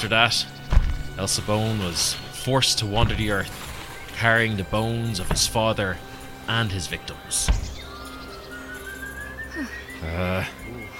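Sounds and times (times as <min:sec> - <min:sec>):
speech: 0:00.0 - 0:00.6, 0:01.2 - 0:07.6, 0:09.6 - 0:10.7
eerie whistling: 0:03.8 - 0:10.9.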